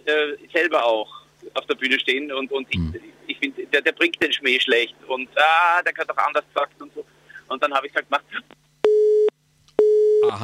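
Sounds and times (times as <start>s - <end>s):
speech: 0.1s - 8.6s, 10.2s - 10.4s
telephone busy signal, call not connecting: 8.9s - 10.3s.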